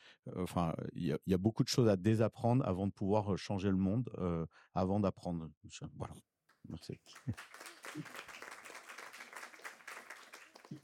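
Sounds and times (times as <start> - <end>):
speech: 0.2 - 8.4
audience applause: 7.0 - 10.8.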